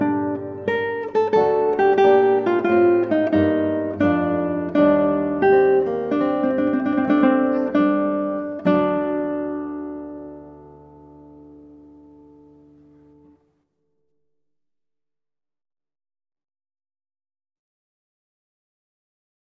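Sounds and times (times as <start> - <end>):
adagio guitar piece: 0.0 - 13.6.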